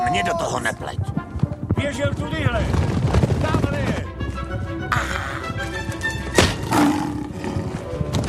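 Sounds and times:
speech: 0.1s - 1.2s, 1.8s - 3.9s, 4.5s - 5.8s
tiger roaring: 6.6s - 8.1s.

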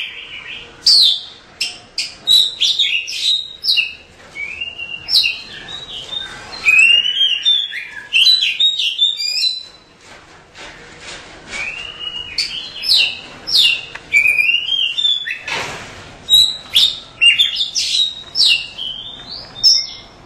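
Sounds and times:
Oriental magpie-robin song of whistles and chirps: 0.0s - 9.9s, 11.6s - 15.5s, 16.3s - 20.2s.

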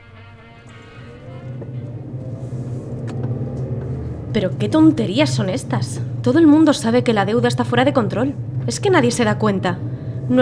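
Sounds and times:
low car engine drone: 0.0s - 10.4s
road rumble from inside a moving car: 0.0s - 10.4s
soft knocks: 0.7s - 4.4s
speech: 4.4s - 10.4s.

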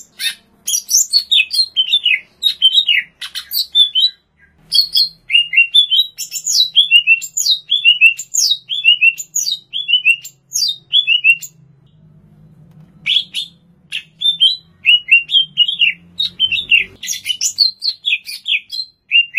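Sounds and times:
greater green leafbird singing: 0.0s - 12.1s, 12.9s - 19.3s.

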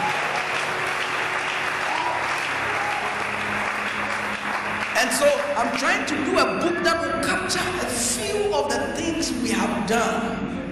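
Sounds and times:
audience applause: 0.0s - 6.0s
speech: 5.0s - 10.5s.

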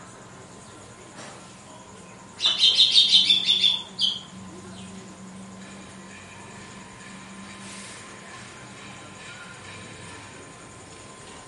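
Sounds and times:
female red-cowled cardinal singing whistled song: 2.4s - 4.3s.

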